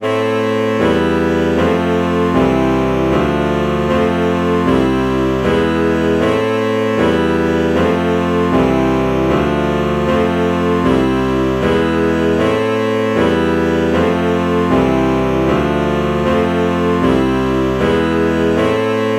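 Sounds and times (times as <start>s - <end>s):
alto saxophone chord morph: 0.0s - 19.1s.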